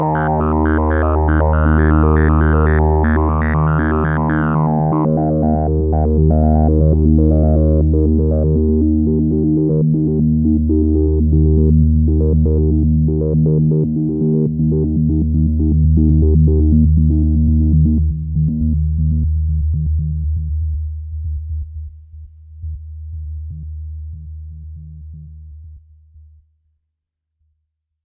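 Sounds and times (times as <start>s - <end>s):
synthesizer LFO modulation: 0.0s - 20.6s.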